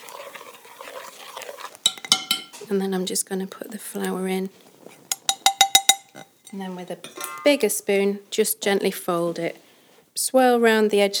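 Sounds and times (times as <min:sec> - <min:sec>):
milk pouring into syrup, sugar and butter: 0:00.0 - 0:07.8
speech: 0:02.7 - 0:04.7, 0:06.5 - 0:11.1.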